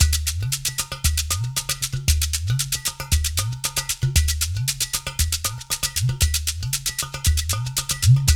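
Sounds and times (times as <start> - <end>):
udu drum hip-hop beat: 0.0 - 8.3.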